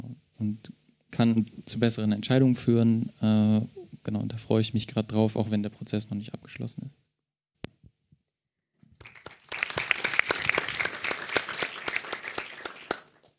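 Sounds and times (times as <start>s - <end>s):
speech: 0.4s - 7.0s
audience clapping: 9.0s - 13.3s.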